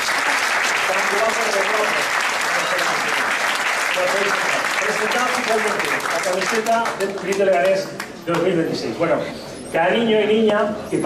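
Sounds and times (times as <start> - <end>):
audience applause: 0.0 - 7.8
speech: 0.9 - 3.4, 4.0 - 11.0.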